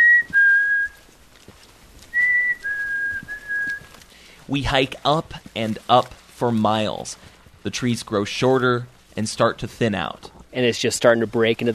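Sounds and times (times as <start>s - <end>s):
person whistling to call birds: 0.0s - 1.0s, 2.2s - 3.9s
speech: 4.5s - 11.7s.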